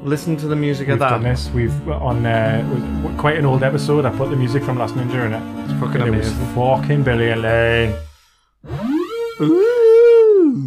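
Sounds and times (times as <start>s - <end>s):
speech: 0.0s - 8.8s, 9.4s - 9.7s
phone alarm tone: 8.7s - 9.7s.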